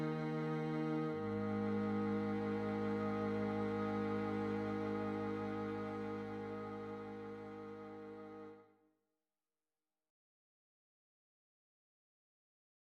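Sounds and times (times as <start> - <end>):
string ensemble moving from F minor to A flat: 0.0 - 8.6.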